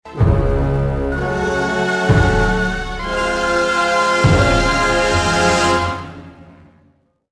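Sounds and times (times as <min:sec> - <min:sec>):
music: 0:00.0 - 0:07.2.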